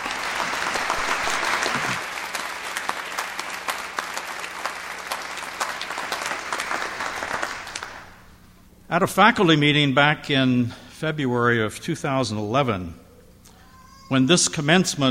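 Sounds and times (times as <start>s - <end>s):
audience applause: 0.0s - 8.2s
speech: 8.9s - 13.0s, 14.1s - 15.1s.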